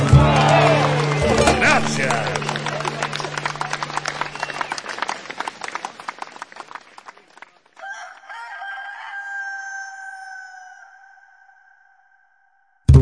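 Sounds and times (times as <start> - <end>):
laughter: 0.1 - 7.2
rooster crowing: 7.8 - 12.8.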